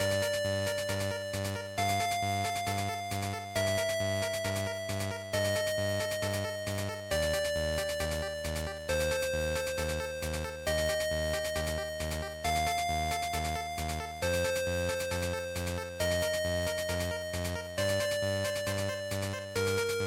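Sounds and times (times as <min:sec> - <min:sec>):
shooter game title background music: 0:00.0 - 0:20.0.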